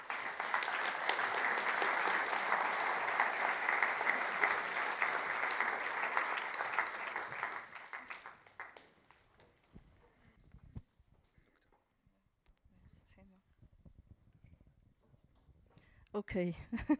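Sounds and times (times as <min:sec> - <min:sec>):
audience applause: 0:00.0 - 0:09.1.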